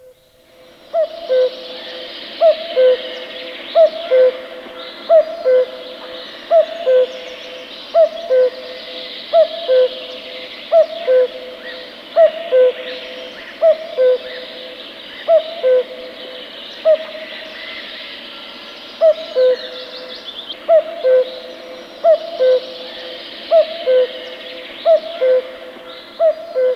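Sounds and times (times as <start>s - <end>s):
birdsong: 0.0s - 26.7s
common cuckoo calling: 0.9s - 17.3s, 19.0s - 26.7s.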